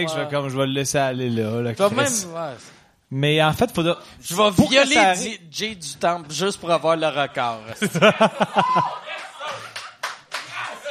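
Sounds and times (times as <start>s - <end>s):
speech: 0.0s - 9.7s
audience laughing: 7.8s - 10.1s
audience applauding: 8.6s - 10.8s.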